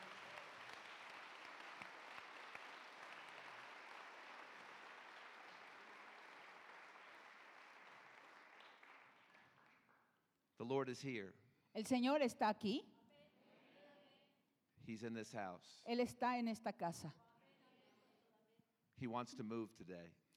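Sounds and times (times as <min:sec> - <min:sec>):
audience applause: 0:00.0 - 0:09.8
speech: 0:10.6 - 0:12.9, 0:14.9 - 0:17.2, 0:19.0 - 0:20.2.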